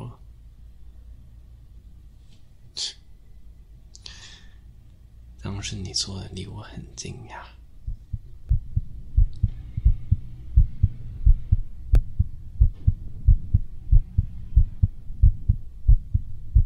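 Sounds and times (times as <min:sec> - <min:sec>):
speech: 0:05.6 - 0:07.6
rapid heartbeat: 0:07.8 - 0:16.6.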